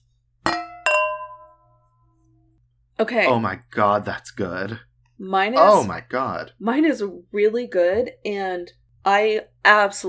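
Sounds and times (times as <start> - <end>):
wine glasses clinking: 0.5 - 1.6
speech: 3.0 - 10.0.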